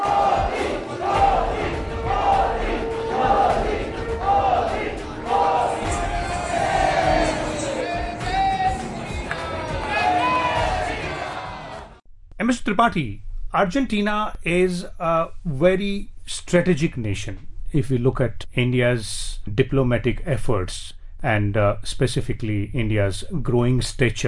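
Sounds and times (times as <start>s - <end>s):
crowd cheering and applauding: 0.0s - 12.0s
speech: 12.8s - 24.2s.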